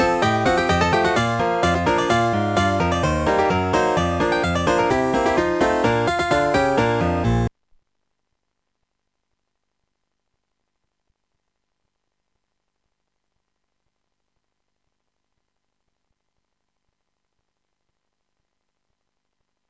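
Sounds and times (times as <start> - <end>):
piano: 0.0 - 7.5.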